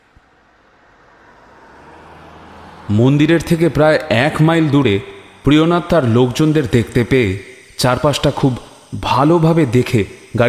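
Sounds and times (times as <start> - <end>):
car driving past: 0.0 - 7.8
road noise: 0.0 - 10.4
speech: 2.9 - 10.4.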